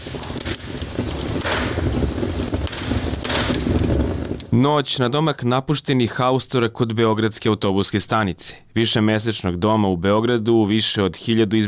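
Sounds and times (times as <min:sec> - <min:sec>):
open-air fire burning old railway sleepers: 0:00.0 - 0:04.7
speech: 0:04.6 - 0:11.6.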